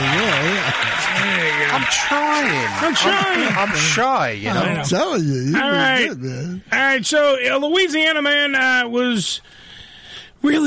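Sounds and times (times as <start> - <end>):
round of applause: 0.0 - 4.4
speech: 1.8 - 9.6, 10.4 - 10.6.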